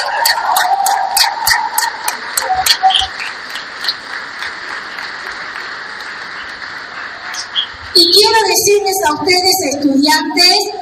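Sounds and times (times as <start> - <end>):
audience applause: 0.0 - 7.9
speech: 8.6 - 10.8.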